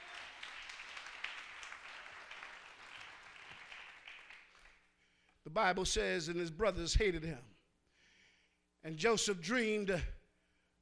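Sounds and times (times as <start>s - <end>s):
crowd clapping: 0.0s - 4.9s
speech: 5.5s - 7.5s, 8.8s - 10.2s.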